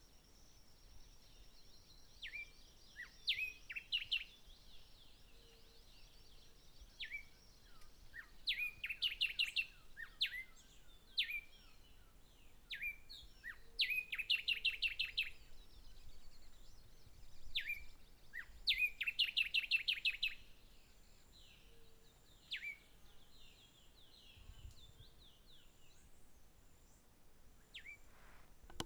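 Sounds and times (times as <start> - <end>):
birds singing: 0.3 - 26.3.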